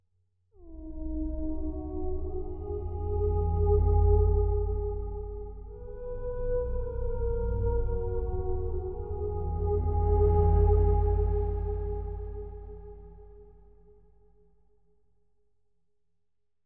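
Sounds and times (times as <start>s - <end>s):
choral strings: 0.8s - 13.7s.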